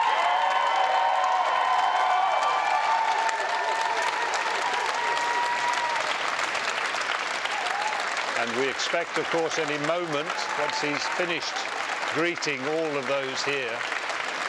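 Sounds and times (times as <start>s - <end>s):
faint cheering: 0.0s - 6.5s, 7.4s - 13.7s
large crowd applauding: 0.0s - 14.4s
speech: 8.4s - 14.0s.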